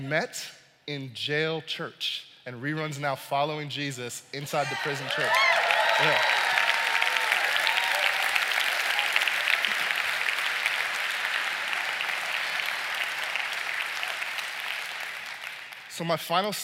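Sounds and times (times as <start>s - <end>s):
speech: 0.0s - 6.5s, 16.0s - 16.6s
audience clapping: 4.6s - 16.6s.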